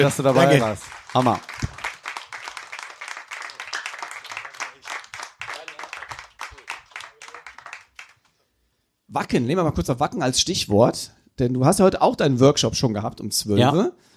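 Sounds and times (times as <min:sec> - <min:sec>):
speech: 0:00.0 - 0:01.6, 0:09.2 - 0:14.1
live audience applause: 0:00.0 - 0:08.3.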